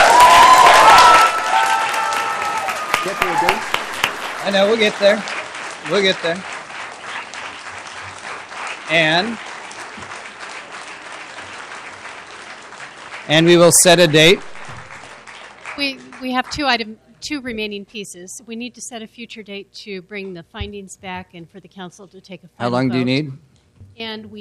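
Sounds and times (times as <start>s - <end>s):
audience cheering: 0.0s - 15.1s
audience clapping: 0.0s - 16.8s
speech: 4.4s - 6.5s, 8.9s - 9.5s, 13.3s - 14.5s, 15.8s - 24.4s.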